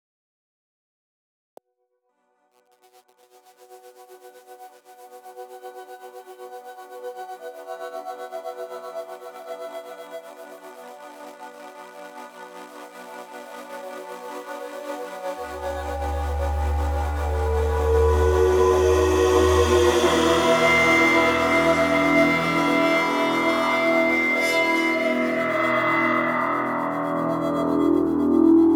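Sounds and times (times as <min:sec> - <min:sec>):
synth pads: 0:08.0 - 0:28.7.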